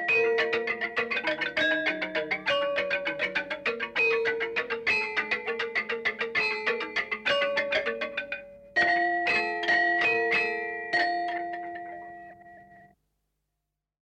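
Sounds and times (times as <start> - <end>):
gambang playing: 0.0 - 12.9.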